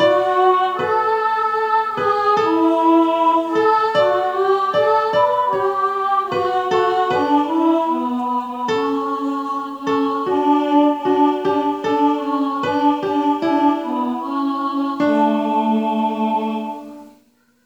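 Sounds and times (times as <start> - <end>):
contralto voices: 0.0 - 17.3.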